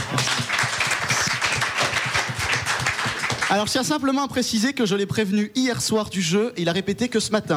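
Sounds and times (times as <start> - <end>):
crowd applauding: 0.0 - 3.9
speech: 3.5 - 7.5.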